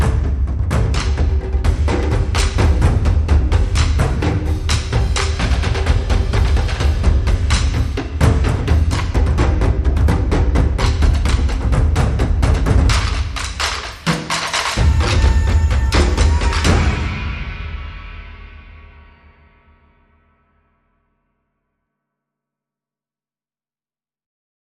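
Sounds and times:
drums: 0.0s - 19.6s.

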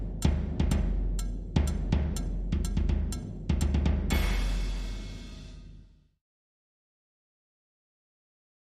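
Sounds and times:
marching band loop: 0.0s - 5.3s.

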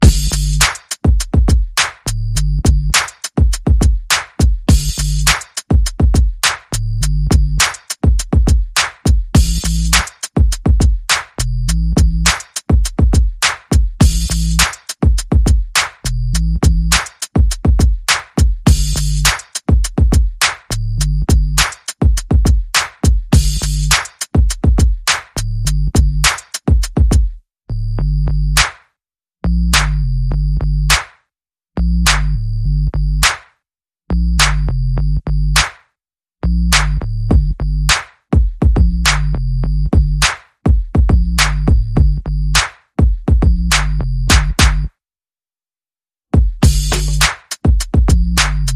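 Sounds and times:
bass: 0.0s - 18.0s, 18.6s - 21.8s, 23.3s - 24.1s, 24.8s - 26.4s, 27.7s - 28.8s, 29.4s - 31.1s, 31.7s - 33.4s, 34.1s - 35.8s, 36.4s - 38.0s, 38.6s - 40.4s, 41.0s - 42.7s, 43.4s - 45.0s, 46.6s - 48.7s
percussion: 0.0s - 27.4s, 28.0s - 31.2s, 31.8s - 44.9s, 46.4s - 48.7s.

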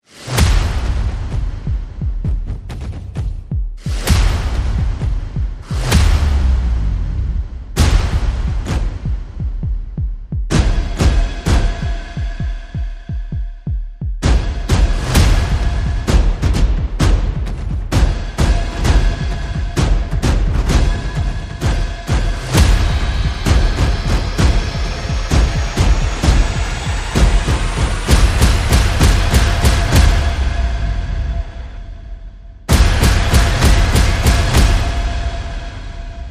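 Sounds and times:
percussion: 0.0s - 36.2s.

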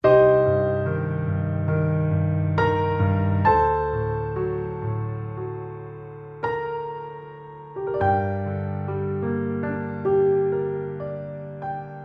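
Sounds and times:
intimate piano: 0.0s - 12.0s.

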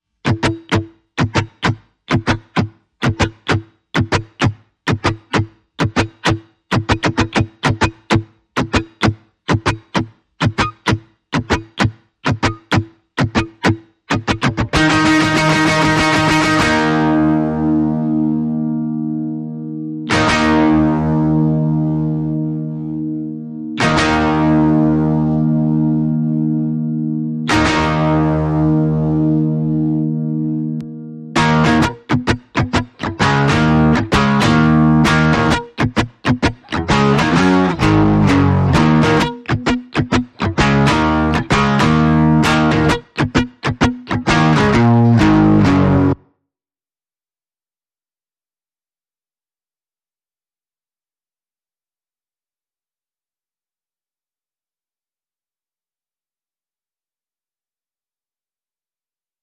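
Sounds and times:
guitars: 0.2s - 46.2s.

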